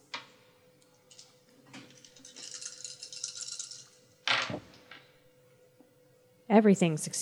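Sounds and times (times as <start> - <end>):
several dice rattling and clattering: 1.9 - 3.9
speech: 6.5 - 7.2.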